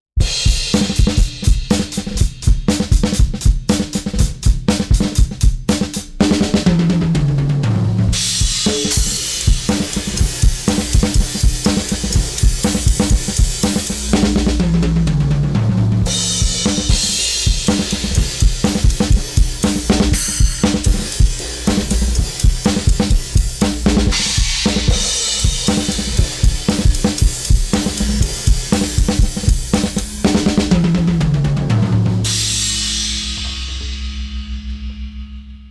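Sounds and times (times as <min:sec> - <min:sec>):
drums: 0:00.1 - 0:35.6.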